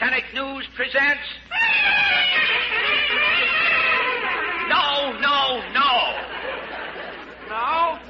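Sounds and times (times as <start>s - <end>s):
speech: 0.7s - 1.4s
two-trumpet newsreel fanfare: 1.5s - 5.2s
laughter: 2.2s - 4.7s, 5.4s - 8.0s.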